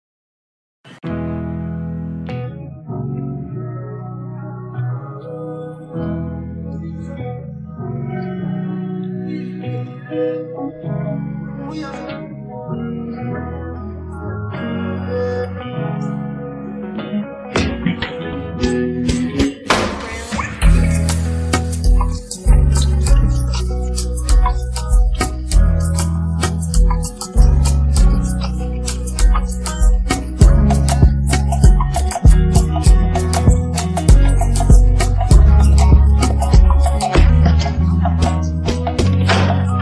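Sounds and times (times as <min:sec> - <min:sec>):
instrumental music: 0:01.0 - 0:39.8.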